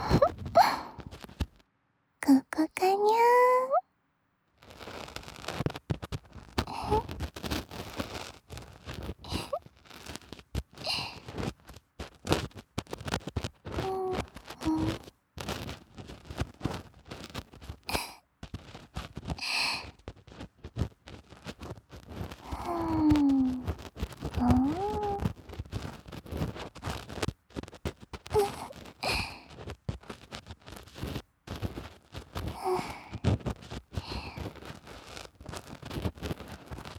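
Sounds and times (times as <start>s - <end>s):
soft vocal murmurs: 0.0s - 1.1s, 2.2s - 3.8s, 6.6s - 7.1s, 9.3s - 9.6s, 13.8s - 15.1s, 17.9s - 18.2s, 22.4s - 25.4s, 28.3s - 29.5s, 32.5s - 33.4s, 34.0s - 34.6s
ear pick scratching inside a left ear: 0.0s - 1.5s, 4.7s - 36.9s.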